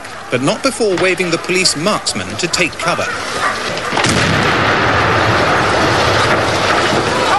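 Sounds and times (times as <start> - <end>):
speech: 0.3 - 4.5
roaring crackling noise: 0.9 - 7.3
demolition charge explosion on embassy balcony: 3.9 - 7.3.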